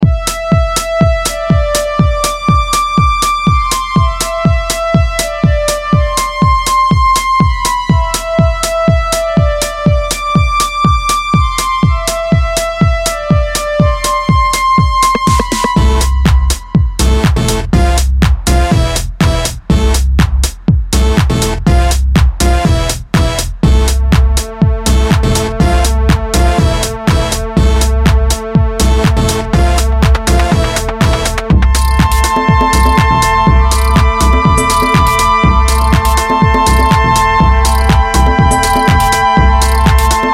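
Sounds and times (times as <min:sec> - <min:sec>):
Chicago house music: 0:00.0 - 0:40.3.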